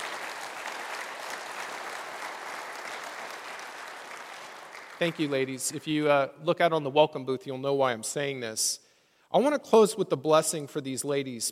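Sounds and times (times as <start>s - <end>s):
audience applause during a church service for the LWML women's group: 0.0s - 6.0s
speech: 5.0s - 11.5s.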